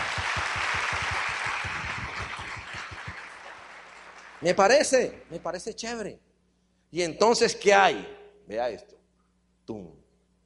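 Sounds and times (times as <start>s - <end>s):
audience applause: 0.0s - 5.2s
speech: 4.4s - 6.3s, 6.9s - 9.0s, 9.7s - 10.0s.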